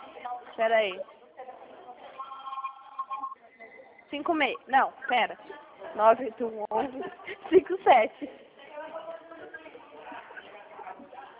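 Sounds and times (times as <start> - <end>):
speech: 0.6 - 1.2, 4.1 - 8.4
phone ringing on an incoming call: 2.2 - 4.7.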